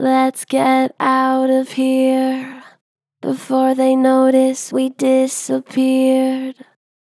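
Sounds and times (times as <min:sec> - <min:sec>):
gentle flat-pitch vocals: 0:00.0 - 0:06.8.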